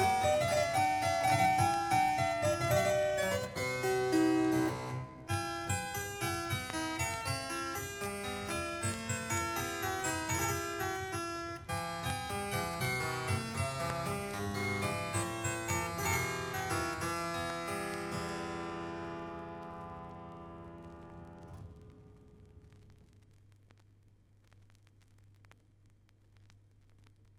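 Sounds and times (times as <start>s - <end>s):
harpsichord jig and rondo: 0.0s - 21.5s.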